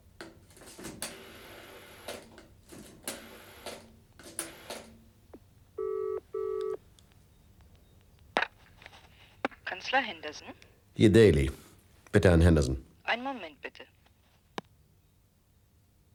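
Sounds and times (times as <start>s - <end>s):
telephone ringing on the line: 1.0s - 2.3s, 3.1s - 5.0s, 5.8s - 6.8s
speech: 9.9s - 12.9s.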